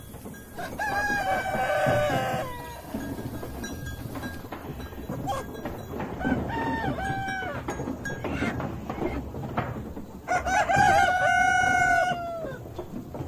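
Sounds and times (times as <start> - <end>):
clucking: 0.0 - 13.2
scattered rustles: 0.0 - 13.2
rooster crowing on a farm: 0.6 - 3.8, 5.1 - 9.2, 10.3 - 12.8.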